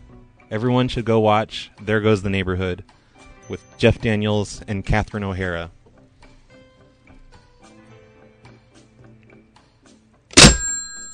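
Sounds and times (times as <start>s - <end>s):
speech: 0.5s - 5.8s
faint metallic ringing: 10.4s - 11.1s
phone handset slammed down: 10.4s - 11.1s.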